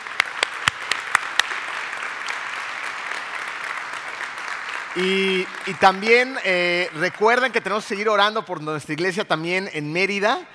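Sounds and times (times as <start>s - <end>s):
audience applause: 0.0s - 8.1s
speech: 5.0s - 10.5s.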